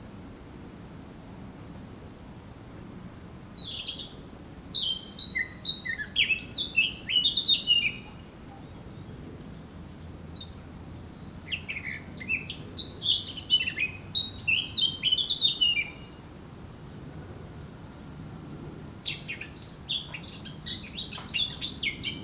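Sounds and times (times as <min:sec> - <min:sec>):
Eurasian blackcap warbling song: 0:03.2 - 0:16.2, 0:19.1 - 0:22.2.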